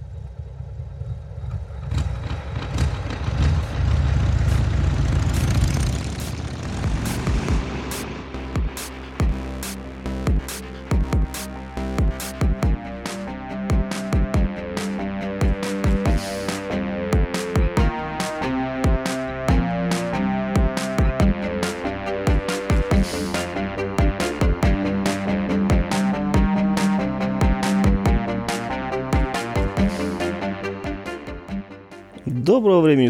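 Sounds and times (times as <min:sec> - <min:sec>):
racing motorcycle engine roaring past and downshifting at an Isle of Man road race: 0:00.0 - 0:31.7
racing motorcycle engine cracks and pops: 0:00.6 - 0:07.5
speech: 0:32.6 - 0:33.0.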